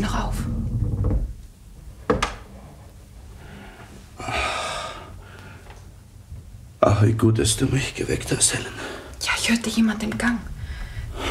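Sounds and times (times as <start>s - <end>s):
door being closed: 0.4s - 1.4s, 2.0s - 2.6s
speech: 7.0s - 10.5s.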